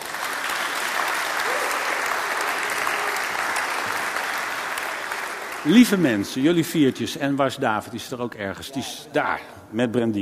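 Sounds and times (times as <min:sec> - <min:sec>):
audience applause: 0:00.0 - 0:06.6
speech: 0:05.6 - 0:10.2.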